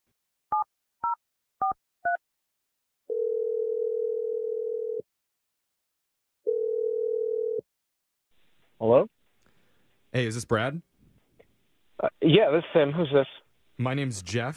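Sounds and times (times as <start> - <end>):
telephone ringing tones: 3.1 - 5.0, 6.5 - 7.6
speech: 8.8 - 9.1, 10.2 - 10.9, 12.0 - 14.5.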